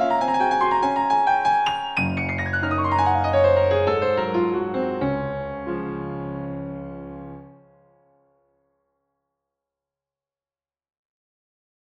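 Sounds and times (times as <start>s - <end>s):
waltz music: 0.2s - 7.5s.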